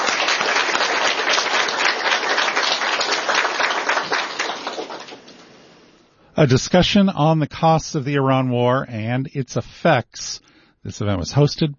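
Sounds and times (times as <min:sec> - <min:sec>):
audience round of applause: 0:00.0 - 0:05.6
speech: 0:06.4 - 0:11.7.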